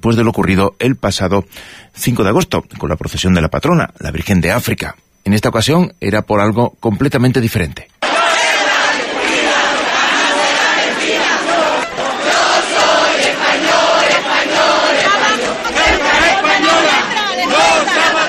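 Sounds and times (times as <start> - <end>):
speech: 0.0 - 7.9
huge crowd of thousands shouting and chanting in a street: 8.0 - 18.2.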